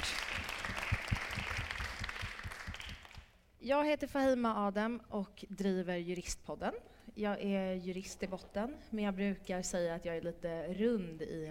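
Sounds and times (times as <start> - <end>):
audience applause: 0.0 - 3.2
speech: 3.6 - 11.4.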